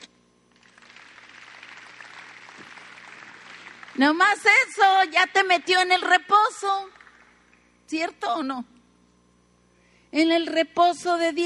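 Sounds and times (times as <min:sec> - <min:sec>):
audience applause: 0:00.5 - 0:04.7, 0:06.9 - 0:07.4
speech: 0:04.0 - 0:07.0, 0:07.9 - 0:08.7, 0:10.1 - 0:11.4.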